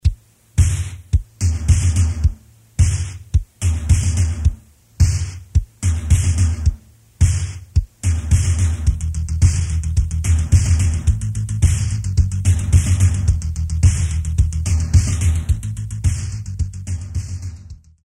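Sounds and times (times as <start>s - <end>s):
drums: 0.0s - 18.0s.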